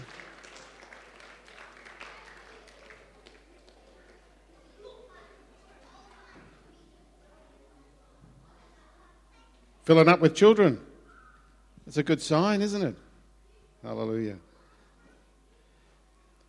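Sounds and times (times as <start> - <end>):
audience clapping for children: 0.0 - 4.8
speech: 9.9 - 10.9, 11.9 - 13.0, 13.8 - 14.5.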